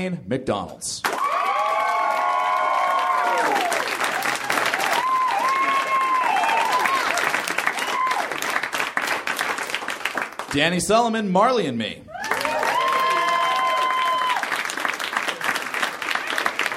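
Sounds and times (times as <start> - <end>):
speech: 0.0 - 1.2, 10.5 - 12.0
audience cheering: 1.0 - 8.8, 12.1 - 16.7
audience applause: 1.1 - 10.5, 12.2 - 16.7.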